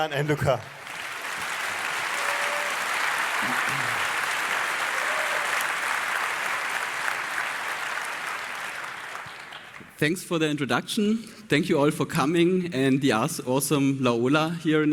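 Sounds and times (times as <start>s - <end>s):
speech: 0.0s - 0.8s, 3.4s - 4.0s, 10.0s - 14.9s
audience applause: 0.0s - 10.0s.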